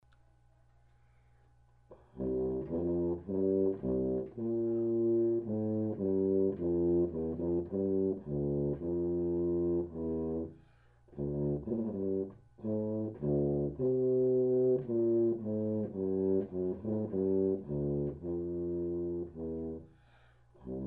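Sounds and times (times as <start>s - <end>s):
tuba: 1.9s - 20.8s.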